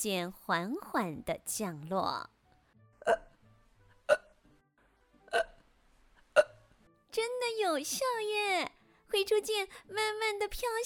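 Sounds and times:
speech: 0.0s - 2.4s, 3.0s - 3.3s, 7.2s - 10.8s
repeated hiccups: 3.0s - 4.5s, 5.2s - 6.8s.

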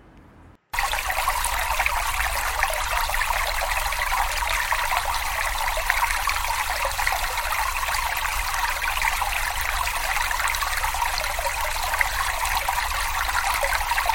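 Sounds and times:
water splashing as someone wades through a river: 0.8s - 14.1s.

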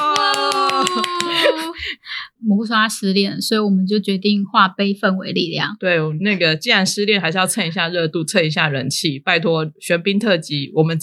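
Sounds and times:
hands clapping: 0.0s - 1.7s
laughter: 0.0s - 2.2s
speech: 2.4s - 11.0s.

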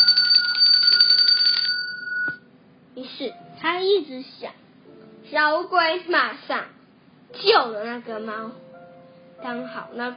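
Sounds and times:
alarm bell ringing: 0.0s - 2.4s
speech: 3.2s - 4.6s, 5.3s - 8.6s, 9.4s - 10.1s.

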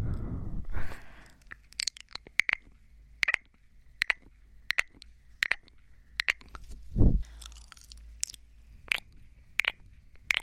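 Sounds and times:
wet mouth sounds with popping clicks and pecking lip sounds: 1.5s - 10.4s.

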